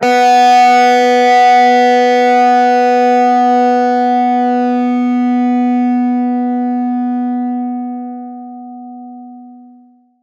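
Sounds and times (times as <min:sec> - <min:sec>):
plucked acoustic and electric distorted guitar: 0:00.0 - 0:09.9.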